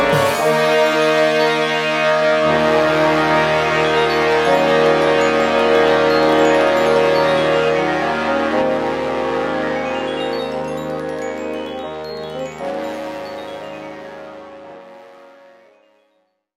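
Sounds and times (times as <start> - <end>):
classic blues music: 0.0 - 12.3.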